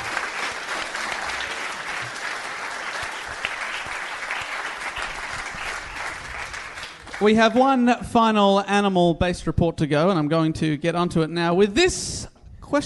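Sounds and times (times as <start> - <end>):
audience applause: 0.0 - 7.4
speech: 7.2 - 12.8.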